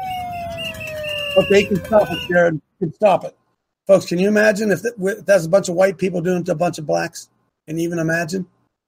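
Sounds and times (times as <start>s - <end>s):
whistle blowing: 0.4s - 2.4s
speech: 1.4s - 8.6s.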